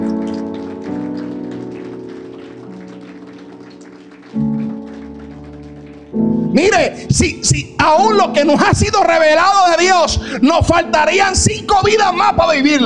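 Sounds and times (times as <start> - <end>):
audience applauding loudly: 0.0 - 7.0
speech: 6.5 - 12.8.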